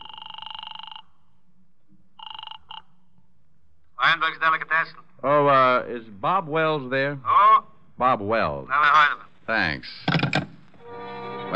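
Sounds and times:
telephone ringing on the line: 0:00.0 - 0:01.1
speech: 0:04.2 - 0:10.4.

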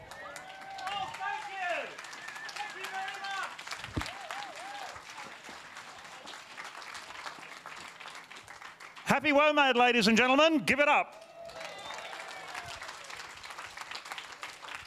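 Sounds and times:
crowd whooping, whistling and cheering: 0:00.0 - 0:05.3, 0:11.1 - 0:13.3
crowd applauding: 0:00.0 - 0:09.4, 0:11.1 - 0:14.8
speech: 0:09.2 - 0:11.2.

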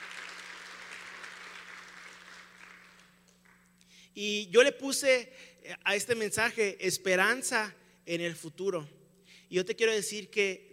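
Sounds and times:
crowd applause: 0:00.0 - 0:03.7
low electrical hum: 0:00.0 - 0:10.7
speech: 0:04.2 - 0:10.7.

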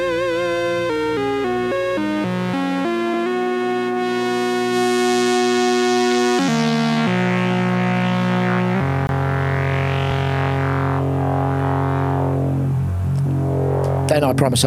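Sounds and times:
PWM Malevolent synthesizer by Future Sound Systems playing: 0:00.0 - 0:14.4
speech: 0:14.3 - 0:14.6.

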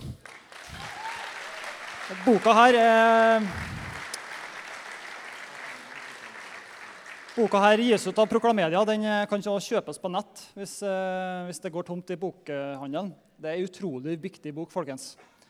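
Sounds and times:
audience applause: 0:00.0 - 0:08.4
speech: 0:02.1 - 0:03.8, 0:07.4 - 0:15.3.

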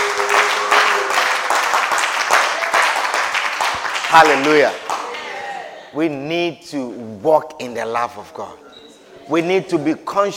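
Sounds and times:
audience applause: 0:00.0 - 0:05.6
speech: 0:04.1 - 0:04.9, 0:06.0 - 0:08.7, 0:09.3 - 0:10.3.

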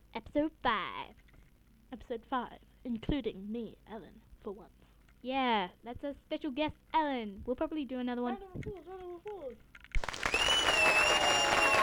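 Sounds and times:
speech: 0:00.4 - 0:01.2, 0:01.9 - 0:09.8
loud dense applause: 0:10.0 - 0:11.8
thin high whistling tone: 0:10.0 - 0:11.8.

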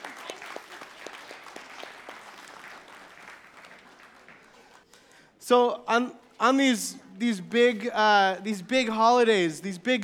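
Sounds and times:
audience applause: 0:00.0 - 0:04.8
speech: 0:05.5 - 0:10.0.

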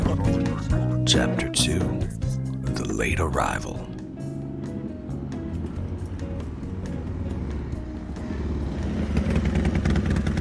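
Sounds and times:
speech: 0:01.1 - 0:03.9
sport motorcycle engine arriving and being parked: 0:02.7 - 0:10.3.

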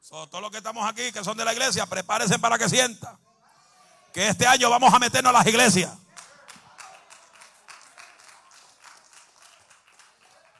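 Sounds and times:
speech: 0:00.1 - 0:03.2, 0:04.2 - 0:06.0
sparse applause from two or three people: 0:06.0 - 0:10.5.

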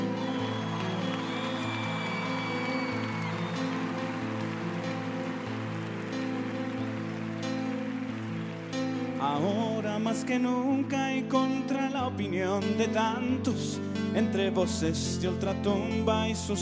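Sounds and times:
crowd applause: 0:00.0 - 0:10.4
speech: 0:09.3 - 0:16.5.

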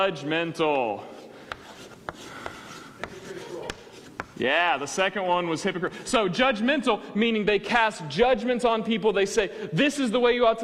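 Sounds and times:
speech: 0:00.0 - 0:01.3, 0:04.4 - 0:10.6
writing sounds: 0:01.0 - 0:05.0.

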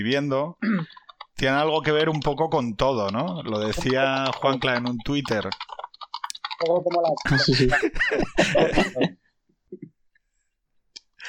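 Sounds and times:
speech: 0:00.0 - 0:05.8, 0:06.6 - 0:09.9
typing on a computer keyboard: 0:00.8 - 0:08.4
laughter: 0:06.8 - 0:09.2.

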